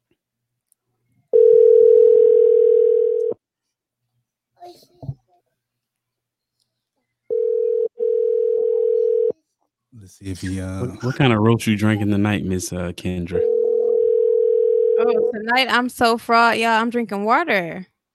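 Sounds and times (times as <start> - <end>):
telephone dial tone while placing call: 1.4 - 3.4, 7.3 - 9.3, 13.4 - 15.0
speech: 10.2 - 13.6, 15.3 - 17.9.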